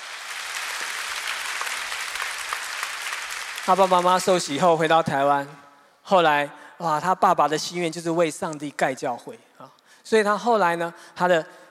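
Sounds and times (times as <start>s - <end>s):
audience applause: 0.0s - 4.6s
speech: 3.6s - 11.6s.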